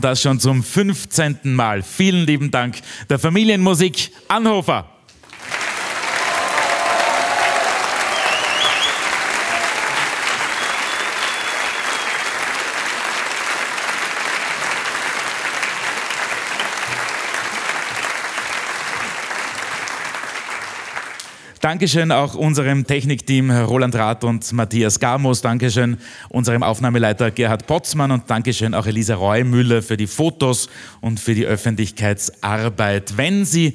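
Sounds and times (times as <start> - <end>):
speech: 0.0 - 5.6, 21.7 - 33.7
audience applause: 5.2 - 21.5.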